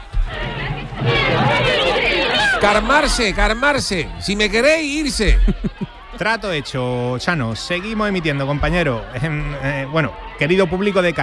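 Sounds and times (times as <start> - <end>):
excited studio audience chattering: 0.0 - 11.2
laughter: 1.2 - 6.8
speech: 2.6 - 11.2.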